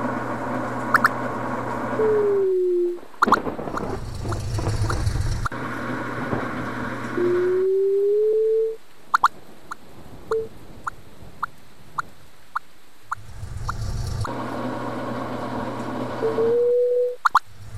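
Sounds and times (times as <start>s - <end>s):
vehicle drone: 0.0s - 8.9s, 13.1s - 17.7s.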